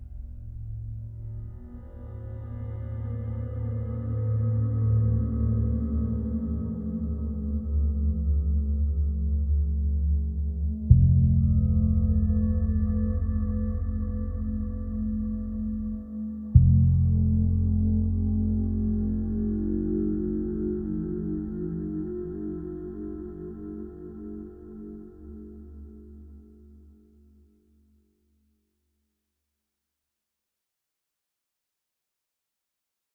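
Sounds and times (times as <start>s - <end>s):
low dark guitar music: 2.4s - 26.4s.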